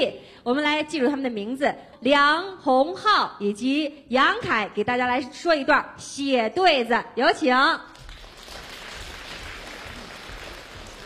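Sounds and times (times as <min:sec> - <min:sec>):
speech: 0:00.0 - 0:08.0
audience applause: 0:08.0 - 0:11.0.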